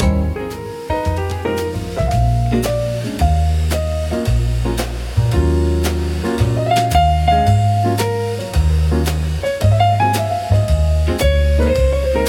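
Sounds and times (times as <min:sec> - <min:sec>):
jazz music in a bar: 0:00.0 - 0:12.2.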